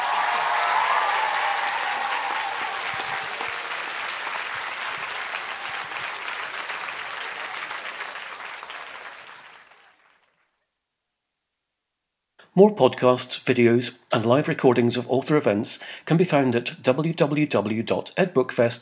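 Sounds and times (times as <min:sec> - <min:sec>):
audience applause: 0:00.0 - 0:10.5
speech: 0:12.6 - 0:18.8.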